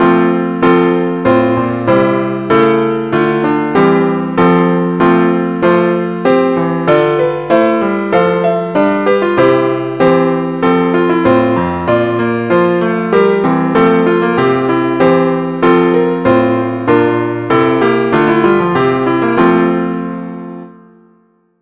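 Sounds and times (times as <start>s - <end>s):
music piece with F sharp: 0.0s - 21.5s.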